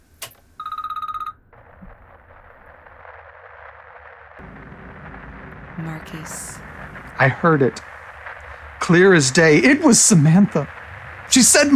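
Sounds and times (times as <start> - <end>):
telephone ringing: 0.6 - 1.5
static hiss with low rumble: 1.5 - 11.7
speech: 5.8 - 6.6, 7.2 - 7.9, 8.9 - 11.7.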